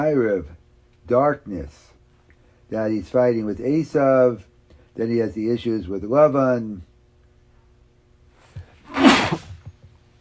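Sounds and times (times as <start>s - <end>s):
speech: 0.0s - 1.9s, 2.7s - 6.9s
sneeze: 8.8s - 9.7s.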